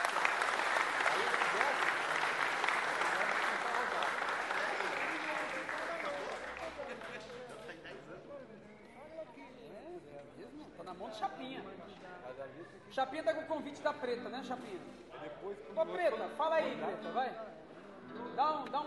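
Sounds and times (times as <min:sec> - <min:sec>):
audience applause: 0:00.0 - 0:07.6
speech: 0:12.7 - 0:17.5, 0:18.4 - 0:18.8.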